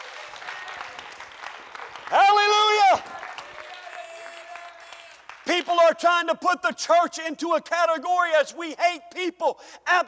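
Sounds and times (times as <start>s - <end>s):
audience clapping: 0.0s - 6.1s
speech: 5.8s - 10.0s.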